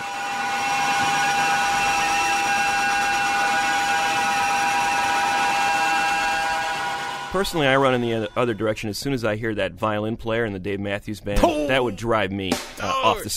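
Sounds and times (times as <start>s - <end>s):
screeching guitar feedback drone: 0.0s - 8.8s
speech: 7.3s - 13.3s.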